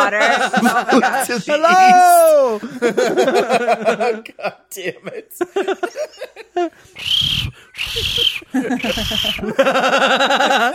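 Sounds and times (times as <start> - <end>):
laughter: 0.0 - 6.8, 7.7 - 10.7
speech: 0.1 - 10.7
vocal yelps: 7.0 - 9.6
voice imitating shrill whistle: 7.0 - 9.6.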